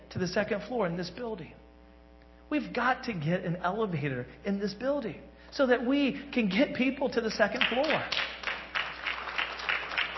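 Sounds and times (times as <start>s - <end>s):
speech: 0.1s - 1.6s, 2.5s - 8.2s
audience clapping: 7.5s - 10.1s.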